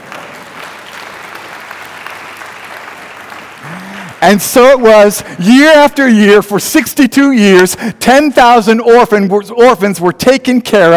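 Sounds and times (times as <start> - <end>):
audience applause: 0.0 - 4.3
speech: 4.2 - 10.9.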